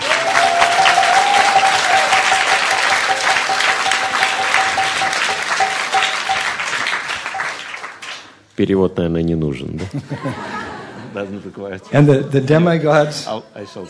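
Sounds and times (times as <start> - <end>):
audience applause: 0.0 - 8.4
speech: 8.6 - 10.6, 11.2 - 13.8
laughter: 9.7 - 12.4.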